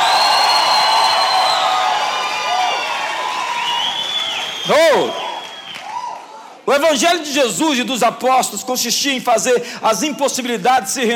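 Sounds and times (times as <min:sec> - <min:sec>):
audience shouting and cheering: 0:00.0 - 0:06.8
speech: 0:06.7 - 0:11.1.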